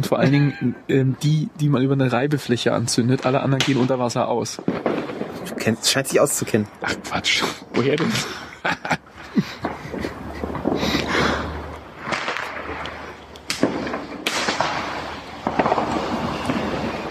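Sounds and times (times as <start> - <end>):
laughter: 0.0 - 0.9, 8.0 - 11.6
speech: 0.0 - 9.6
firecrackers exploding in a canal: 4.6 - 5.8, 9.1 - 17.0.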